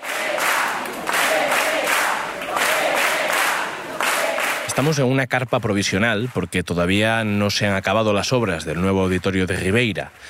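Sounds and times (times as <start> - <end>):
large crowd chanting a party acronym: 0.0 - 4.8
scattered cheers and claps: 0.0 - 6.5
speech: 4.8 - 10.2.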